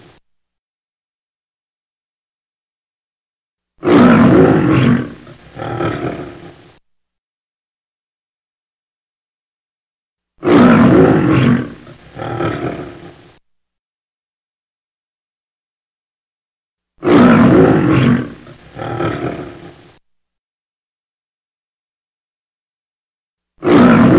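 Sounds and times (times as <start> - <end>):
lion roaring: 3.8 - 6.8, 10.4 - 13.4, 17.0 - 20.0, 23.6 - 24.1.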